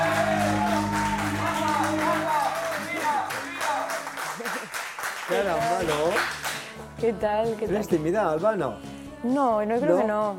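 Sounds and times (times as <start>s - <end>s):
sustained musical backing: 0.0s - 4.4s, 5.2s - 10.3s
studio audience applause: 0.0s - 6.8s
speech: 5.4s - 6.4s, 7.0s - 10.3s.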